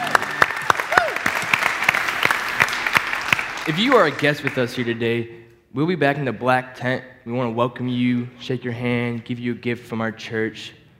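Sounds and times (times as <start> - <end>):
audience applause at a church event for the show's co-host: 0.0 - 5.0
speech: 3.7 - 10.8.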